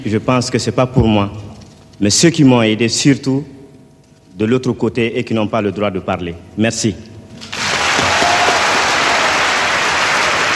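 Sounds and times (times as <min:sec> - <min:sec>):
speech: 0:00.0 - 0:03.6, 0:04.4 - 0:07.5
audience applause: 0:07.5 - 0:10.5.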